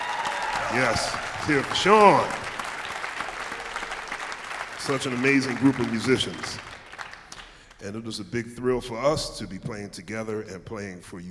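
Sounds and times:
crowd applause: 0:00.0 - 0:07.7
speech: 0:00.7 - 0:02.4, 0:04.8 - 0:06.7, 0:07.8 - 0:11.3.

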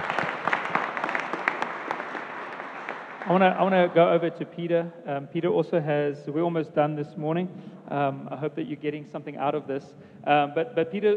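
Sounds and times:
audience applause: 0:00.0 - 0:04.2
speech: 0:03.3 - 0:11.1.

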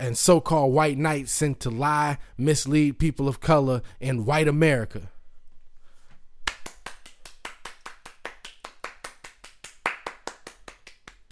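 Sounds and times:
speech: 0:00.0 - 0:05.1
clapping: 0:06.4 - 0:11.2.

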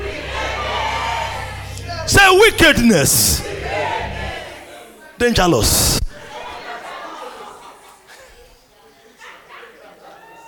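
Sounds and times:
crowd shouting: 0:00.0 - 0:07.4
speech: 0:02.1 - 0:03.5, 0:05.2 - 0:06.0
laughter: 0:06.1 - 0:10.4.

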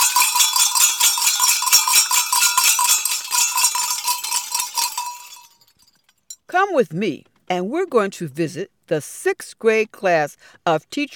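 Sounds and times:
hand-rung school bells ringing: 0:00.0 - 0:06.0
speech: 0:06.6 - 0:11.1.

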